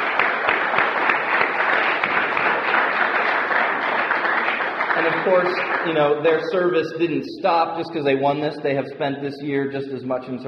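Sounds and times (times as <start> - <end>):
audience applause: 0.0 - 6.8
speech: 5.0 - 10.4.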